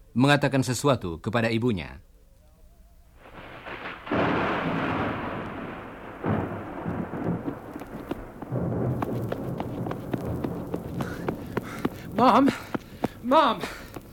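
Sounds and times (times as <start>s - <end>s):
speech: 0.2s - 2.1s, 12.2s - 13.8s
deep rolling thunder before a storm: 3.2s - 14.1s
rain patter: 3.2s - 14.1s.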